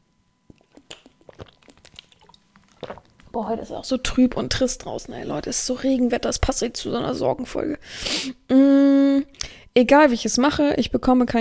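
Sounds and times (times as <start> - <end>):
person taking a sip of water: 0.5 - 3.4
speech: 3.4 - 11.3.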